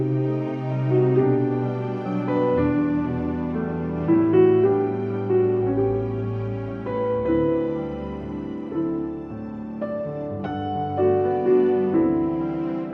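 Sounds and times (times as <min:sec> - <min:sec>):
string instruments playing: 0:00.0 - 0:12.9.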